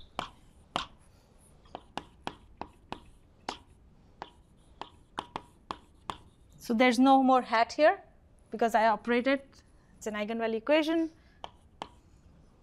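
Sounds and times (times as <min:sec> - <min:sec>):
pen or chalk writing on a board during a lecture: 0:00.0 - 0:06.7, 0:11.4 - 0:12.6
speech: 0:06.7 - 0:11.2.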